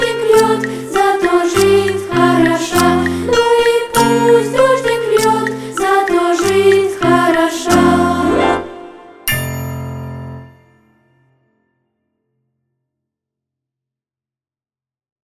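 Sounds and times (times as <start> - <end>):
vocal ensemble singing: 0.0 - 9.3.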